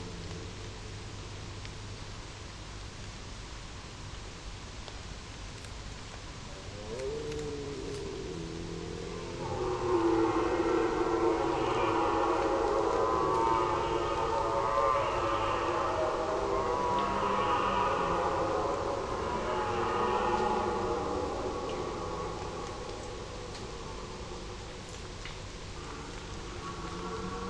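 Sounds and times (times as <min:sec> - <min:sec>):
red deer stag roaring: 0:06.4 - 0:27.4.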